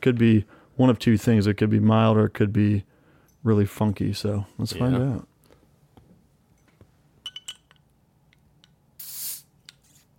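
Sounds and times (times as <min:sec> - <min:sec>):
speech: 0:00.0 - 0:05.3
carbonation hiss from opened beer bottle: 0:09.0 - 0:10.0.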